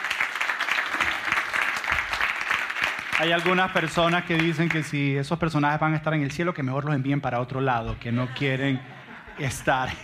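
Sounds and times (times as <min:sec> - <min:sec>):
audience applause: 0:00.0 - 0:04.9
speech: 0:03.2 - 0:10.0
laughter: 0:07.9 - 0:10.0.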